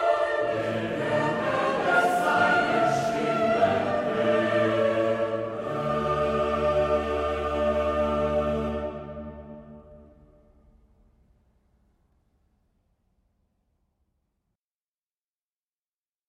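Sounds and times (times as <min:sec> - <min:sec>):
choir singing: 0:00.0 - 0:10.4.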